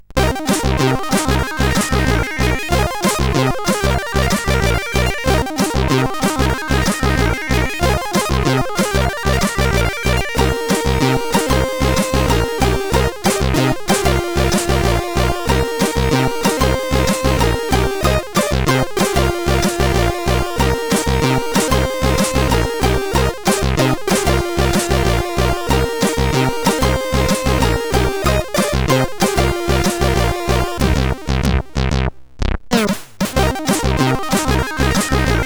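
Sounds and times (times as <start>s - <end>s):
CSG8580R5 chip music: 0.1s - 32.1s, 33.2s - 35.4s.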